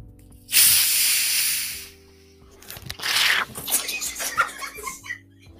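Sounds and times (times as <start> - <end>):
shaken soda bottle fizzing as it opens: 0.5 - 1.9, 2.7 - 4.1
laughter: 3.5 - 5.3.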